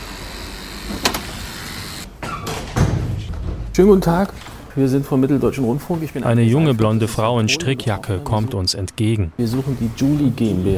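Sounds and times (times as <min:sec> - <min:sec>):
door opening: 0:00.8 - 0:03.8
speech: 0:03.8 - 0:10.7.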